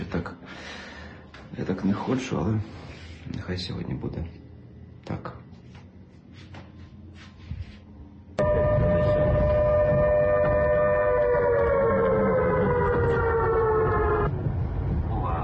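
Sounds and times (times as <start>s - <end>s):
speech: 1.6s - 4.4s
civil defense air raid siren: 8.4s - 15.3s
low rumbling noise: 8.4s - 15.4s.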